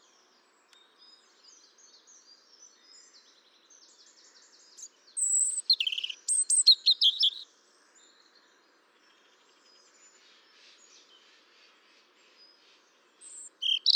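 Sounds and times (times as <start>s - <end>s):
European robin Erithacus rubecula high liquid warbled song: 5.2s - 7.4s, 13.2s - 13.9s.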